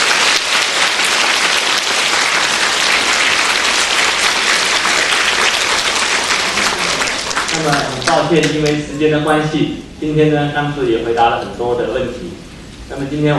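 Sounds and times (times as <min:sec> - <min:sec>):
warm audience applause: 0:00.0 - 0:08.9
speech: 0:07.7 - 0:13.3.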